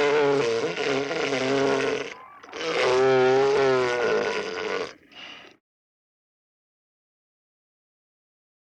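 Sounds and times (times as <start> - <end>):
elephant seal roaring with harsh throaty bellows: 0.0 - 5.3.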